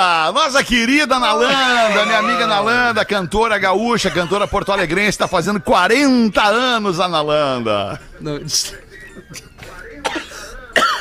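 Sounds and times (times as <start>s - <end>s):
speech: 0.3s - 10.2s
laughter: 1.4s - 3.0s, 3.8s - 5.6s, 8.6s - 9.8s
person coughing after choking: 10.0s - 10.9s.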